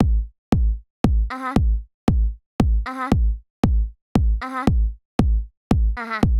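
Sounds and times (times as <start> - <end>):
drum: 0.0 - 6.3.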